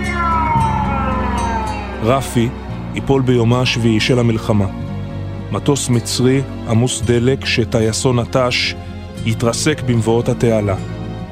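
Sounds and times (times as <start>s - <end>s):
air raid siren wailing: 0.0s - 5.4s
speech: 2.0s - 4.8s, 5.5s - 11.0s.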